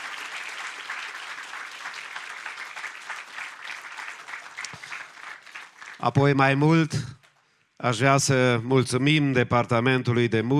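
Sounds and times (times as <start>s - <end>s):
church congregation applauding during a praise service: 0.0s - 7.6s
speech: 6.0s - 7.2s, 7.8s - 10.5s.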